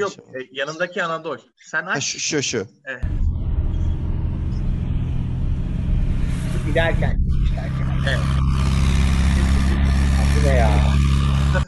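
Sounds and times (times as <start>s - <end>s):
speech: 0.0s - 3.3s, 6.8s - 8.5s, 10.4s - 11.6s
car exhaust rumble: 3.0s - 11.6s.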